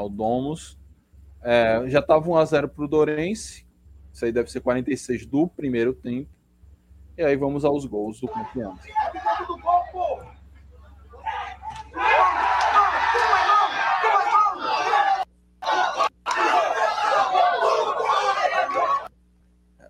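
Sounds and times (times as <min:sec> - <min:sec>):
speech: 0:00.0 - 0:00.8, 0:01.4 - 0:03.6, 0:04.2 - 0:06.4, 0:07.2 - 0:10.3
nervous stadium crowd: 0:08.3 - 0:19.1.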